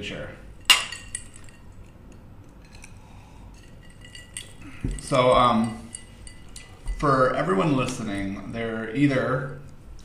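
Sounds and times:
speech: 0.0s - 0.5s, 4.8s - 5.8s, 7.0s - 9.6s
glasses clinking in a toast: 0.5s - 8.4s.

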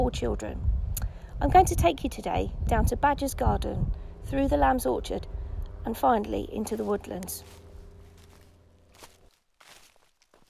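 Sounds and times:
low hum: 0.0s - 10.2s
speech: 0.1s - 0.8s, 1.4s - 7.6s
footsteps walking down a purpose-built wooden ramp in a children's outdoor learning garden: 6.9s - 10.4s.

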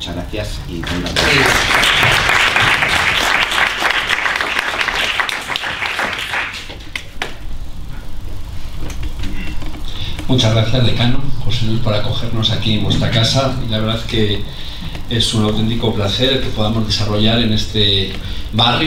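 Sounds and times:
speech: 0.1s - 1.9s, 10.3s - 18.8s
audience applause: 0.8s - 7.4s.

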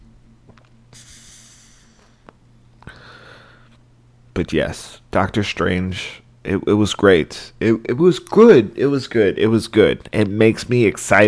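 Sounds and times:
person inhaling smoke on a hit: 0.9s - 3.8s
speech: 4.4s - 11.2s.

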